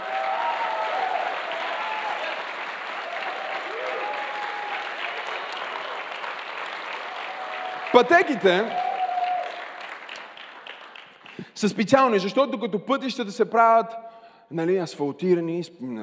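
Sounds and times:
faint cheers or voices: 0.0 - 5.3, 7.1 - 9.7
audience applause: 0.0 - 11.5
speech: 7.9 - 8.8, 11.6 - 16.0.

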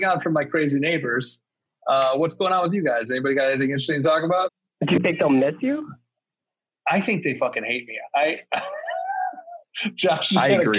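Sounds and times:
laughter: 0.0 - 1.3, 1.9 - 4.4, 5.0 - 5.5, 6.9 - 10.7
speech: 0.0 - 6.0, 6.9 - 8.8, 9.8 - 10.7
cat noise from the ceiling: 8.2 - 9.9.

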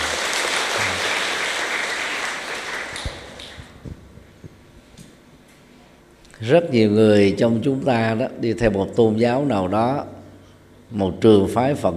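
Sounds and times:
audience applause: 0.0 - 3.7
speech: 6.4 - 10.2, 10.9 - 11.9.

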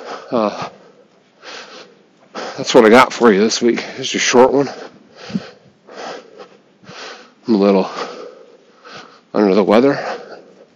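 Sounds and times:
man with a cold huffing and puffing, struggling to breathe: 0.0 - 2.7, 4.6 - 9.3, 9.9 - 10.7
speech: 0.3 - 0.8, 2.6 - 5.4, 7.5 - 8.1, 9.4 - 10.2.

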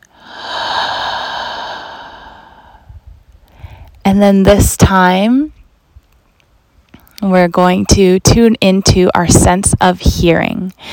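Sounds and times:
slow deep breath in through the nose, out through the mouth: 0.0 - 4.0
speech: 4.1 - 5.6, 7.2 - 10.9.

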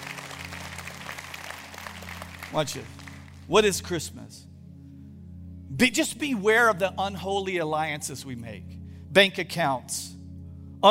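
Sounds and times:
audience applauding: 0.0 - 3.5
speech: 2.5 - 4.5, 5.7 - 10.2.

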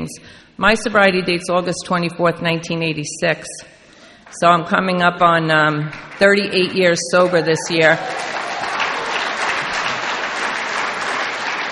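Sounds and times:
speech: 0.1 - 8.4
audience applause: 7.2 - 11.7.

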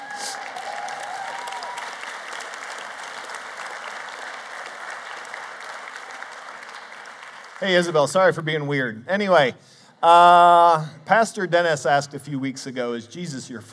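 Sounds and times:
audience applause: 0.0 - 8.0
speech: 7.6 - 13.7.

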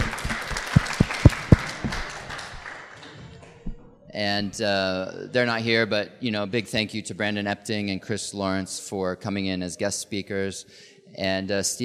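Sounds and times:
small group applauding: 0.0 - 3.7
speech: 4.2 - 11.8.

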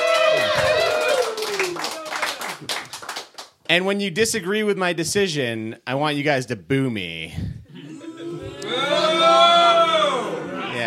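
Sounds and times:
audience cheering: 0.0 - 2.8, 7.9 - 10.8
speech: 3.7 - 7.5.

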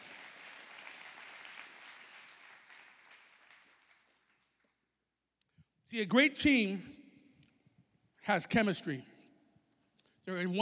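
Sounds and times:
audience clapping hands: 0.0 - 4.8
speech: 5.9 - 6.9, 8.3 - 9.1, 10.3 - 10.5.

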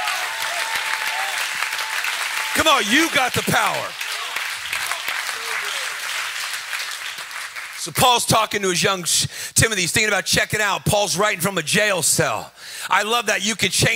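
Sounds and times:
audience clapping and shouting: 0.0 - 8.4
speech: 2.6 - 4.0, 7.8 - 13.9.

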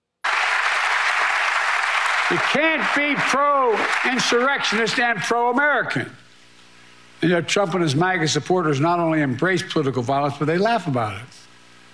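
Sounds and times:
audience applause: 0.2 - 5.1
speech: 2.3 - 6.2, 7.2 - 11.4.

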